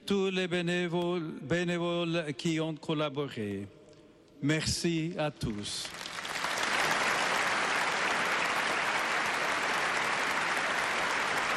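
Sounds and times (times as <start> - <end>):
speech: 0.1 - 3.8, 4.4 - 6.0
church audience applauding: 5.8 - 11.5.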